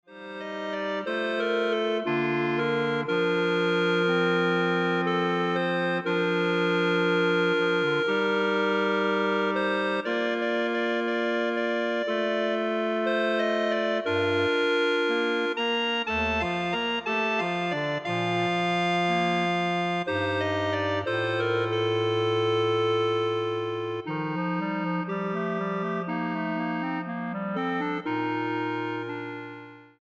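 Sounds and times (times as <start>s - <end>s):
clarinet ensemble playing: 0.2s - 29.9s.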